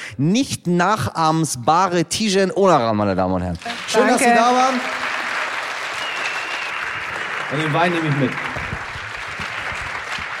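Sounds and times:
speech: 0.2s - 5.0s, 7.5s - 8.4s
audience applause: 3.7s - 10.3s.

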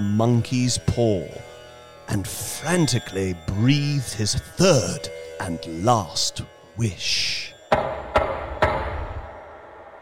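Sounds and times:
speech: 0.2s - 1.5s, 2.1s - 7.9s
loud knocking on a door: 7.7s - 9.2s.

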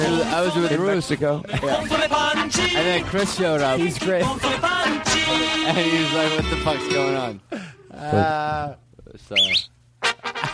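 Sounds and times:
speech: 0.1s - 9.7s
person whistling loudly: 9.4s - 9.7s.

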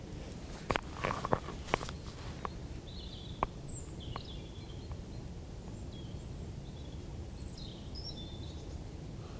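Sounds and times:
crunching footsteps: 0.0s - 2.6s
European robin singing: 1.0s - 9.0s.

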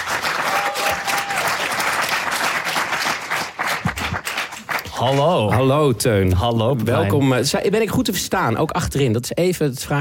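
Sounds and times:
audience applause: 0.0s - 5.8s
speech: 5.0s - 9.9s.

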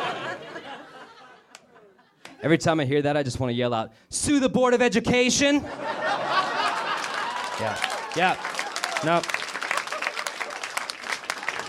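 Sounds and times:
laughter: 0.0s - 2.4s, 5.6s - 11.6s
speech: 2.4s - 6.2s, 7.6s - 9.4s
audience applause: 6.3s - 11.6s.

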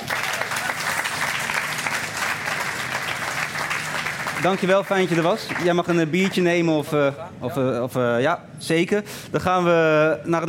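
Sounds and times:
audience applause: 0.0s - 6.4s
speech: 4.4s - 10.4s.

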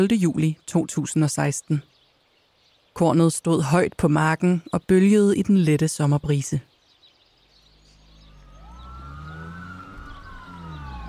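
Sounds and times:
speech: 0.0s - 1.9s, 3.0s - 6.7s
low engine rumble: 7.5s - 11.0s
police sirens wailing: 7.8s - 11.0s.

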